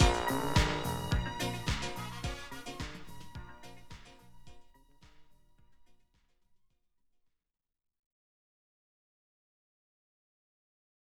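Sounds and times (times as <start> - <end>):
instrumental music: 0.0 - 5.3.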